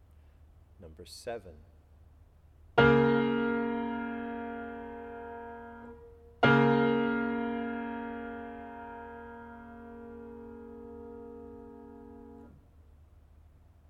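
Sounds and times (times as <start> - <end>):
chords: 2.8 - 12.6.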